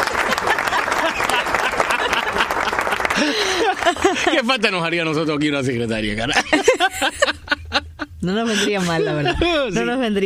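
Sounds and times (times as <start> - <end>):
applause: 0.0 - 4.5
laughter: 0.0 - 5.2, 6.1 - 10.0
speech: 4.1 - 7.4, 8.2 - 10.2.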